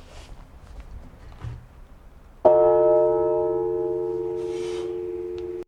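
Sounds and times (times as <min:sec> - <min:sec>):
bell ringing: 0:02.5 - 0:05.6.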